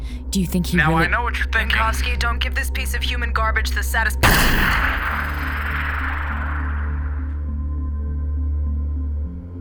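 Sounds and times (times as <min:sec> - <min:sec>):
speech: 0:00.4 - 0:05.4
warning shot fired in an audio drama: 0:04.2 - 0:07.5
low steady drone: 0:04.2 - 0:08.6.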